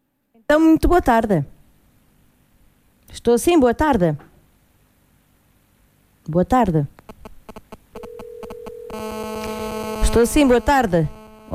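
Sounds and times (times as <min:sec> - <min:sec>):
speech: 0:00.4 - 0:01.5, 0:03.1 - 0:04.3, 0:06.3 - 0:07.0, 0:10.2 - 0:11.5
telephone line buzzing pulses on a radio phone-in call: 0:07.0 - 0:11.5.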